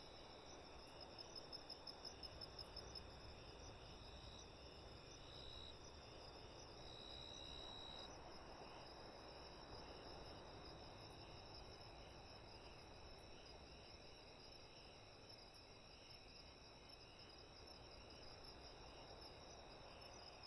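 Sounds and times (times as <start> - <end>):
crickets chirping at night in the Baja Desert: 0.0 - 20.4.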